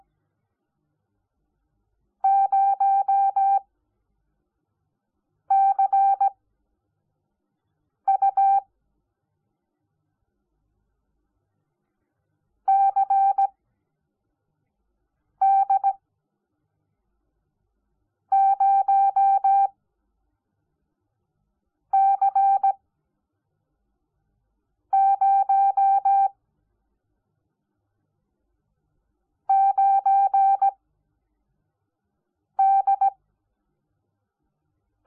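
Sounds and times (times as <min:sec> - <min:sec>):
morse code beeps: 0:02.3 - 0:03.6, 0:05.5 - 0:06.3, 0:08.1 - 0:08.6, 0:12.7 - 0:13.5, 0:15.4 - 0:16.0, 0:18.4 - 0:19.7, 0:22.0 - 0:22.8, 0:25.0 - 0:26.3, 0:29.5 - 0:30.8, 0:32.6 - 0:33.2.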